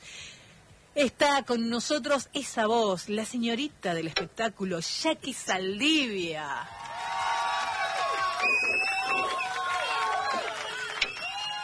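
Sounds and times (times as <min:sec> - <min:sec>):
speech: 0:01.0 - 0:06.8
audience ovation cheering: 0:06.6 - 0:11.6.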